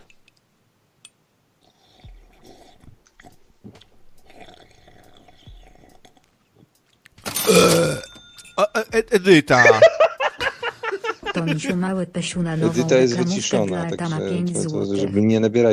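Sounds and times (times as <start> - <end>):
wet slurping mouth noises: 1.6 - 7.1
loud rasping burp: 4.1 - 6.3, 7.4 - 8.2
speech: 7.5 - 8.0, 8.6 - 10.0, 11.4 - 15.7
laughter: 9.4 - 13.7.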